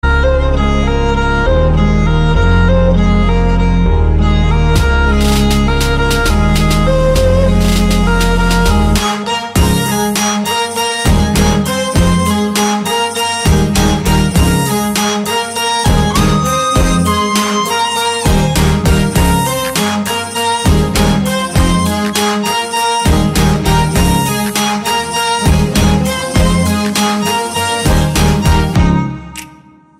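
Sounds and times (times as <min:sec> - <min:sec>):
violin: 0:00.0 - 0:29.7.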